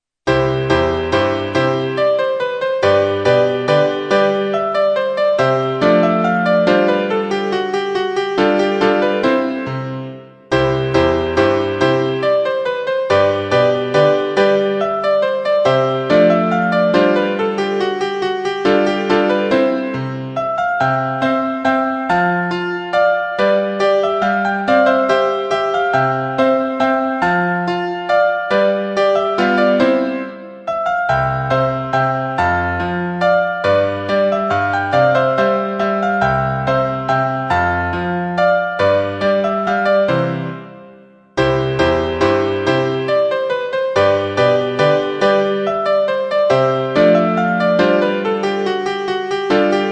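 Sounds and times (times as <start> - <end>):
German waltz: 0.3 - 49.9.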